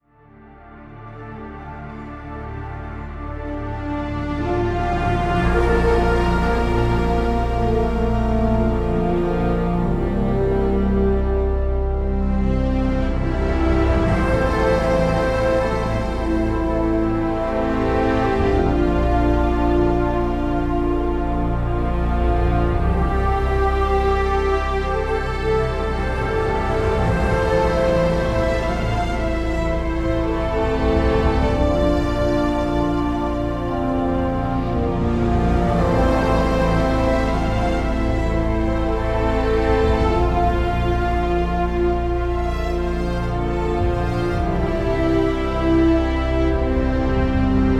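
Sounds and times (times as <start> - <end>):
majestic orchestral movement opener with horn: 0.0 - 47.7.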